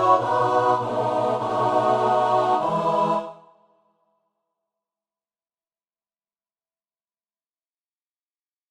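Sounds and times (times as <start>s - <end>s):
MIDI psalm tune: 0.0s - 3.6s.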